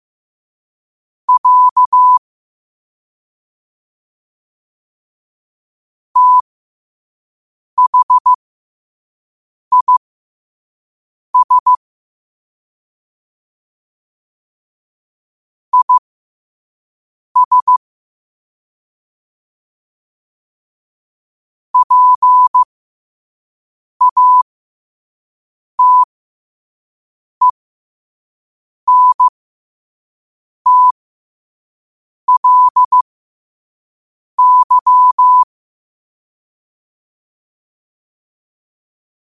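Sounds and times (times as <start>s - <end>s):
morse code at 5 wpm: 1.3s - 2.2s, 6.2s - 6.4s, 7.8s - 8.4s, 9.7s - 10.0s, 11.4s - 11.8s, 15.8s - 16.0s, 17.4s - 17.8s, 21.8s - 22.7s, 24.0s - 24.5s, 25.8s - 26.1s, 28.9s - 29.3s, 30.7s - 31.0s, 32.3s - 33.0s, 34.4s - 35.5s.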